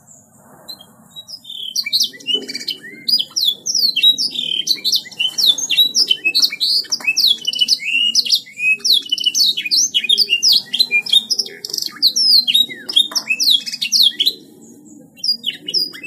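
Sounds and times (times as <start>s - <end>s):
songbird singing fast medley of high chirps, trills and whistled sweeps: 0.0s - 16.0s.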